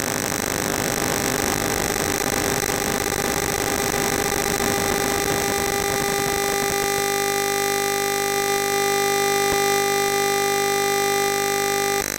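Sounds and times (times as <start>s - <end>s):
5G NR data transmission at 36 GHz: 0.1s - 12.1s.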